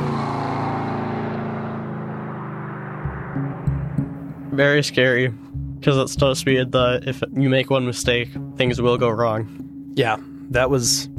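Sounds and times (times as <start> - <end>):
car speeding past: 0.0 - 4.6
low thumps: 2.8 - 7.0
speech: 3.4 - 11.1.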